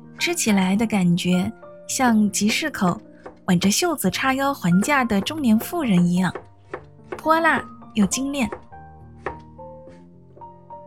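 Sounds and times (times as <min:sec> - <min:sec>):
speech: 0:00.2 - 0:06.4, 0:07.2 - 0:08.6
knife chopping peppers finely: 0:02.4 - 0:03.7, 0:04.7 - 0:09.5.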